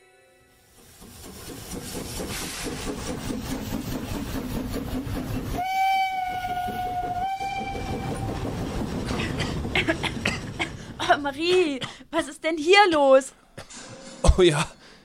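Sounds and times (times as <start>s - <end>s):
steam locomotive chugging: 0.6s - 11.5s
steam locomotive whistle: 5.6s - 8.4s
speech: 11.2s - 13.4s, 14.3s - 14.7s.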